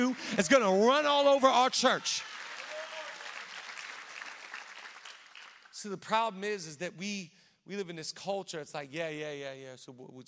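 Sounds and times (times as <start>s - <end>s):
speech: 0.0s - 2.3s, 5.8s - 10.2s
audience clapping: 0.0s - 6.0s.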